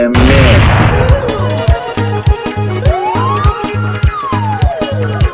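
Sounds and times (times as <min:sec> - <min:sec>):
bass-boosted audio: 0:00.2 - 0:05.3.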